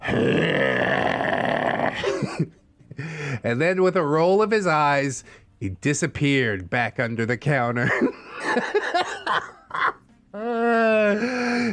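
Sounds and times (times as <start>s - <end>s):
human voice imitating a cat hacking up a hairball: 0.0s - 2.5s
speech: 2.0s - 9.8s, 10.4s - 11.7s
laughter: 7.8s - 9.9s.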